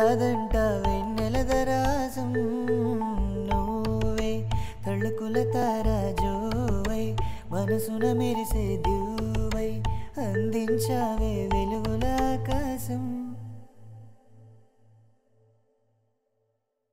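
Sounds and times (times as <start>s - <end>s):
Telugu song: 0.0s - 13.2s.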